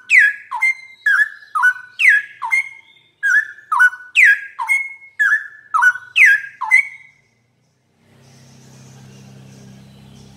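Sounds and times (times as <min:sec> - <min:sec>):
bird singing whistled notes: 0:00.0 - 0:07.4, 0:08.1 - 0:10.3.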